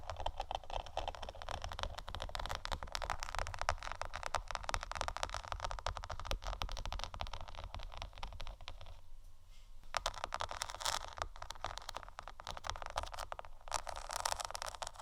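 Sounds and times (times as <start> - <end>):
scratching and tapping on placemats: 0.0 - 9.0, 9.8 - 15.0.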